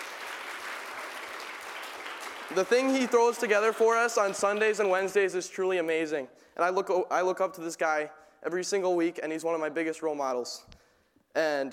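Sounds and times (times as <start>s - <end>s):
audience round of applause: 0.0s - 5.1s
speech: 2.5s - 10.8s, 11.4s - 11.7s.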